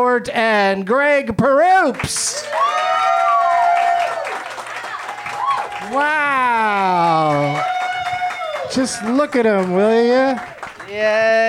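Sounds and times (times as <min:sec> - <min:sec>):
speech: 0:00.0 - 0:02.9, 0:05.9 - 0:07.8, 0:08.7 - 0:11.4
audience clapping and cheering to welcome three comedy guests: 0:01.8 - 0:11.4
person calling out: 0:06.0 - 0:07.6.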